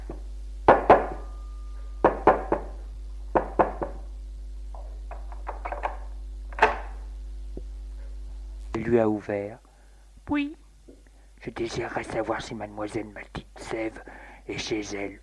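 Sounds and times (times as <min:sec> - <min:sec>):
knocking on a door: 0:00.7 - 0:01.2, 0:02.0 - 0:02.7, 0:03.3 - 0:04.0
speech: 0:08.9 - 0:09.7, 0:10.3 - 0:10.6, 0:11.5 - 0:15.2.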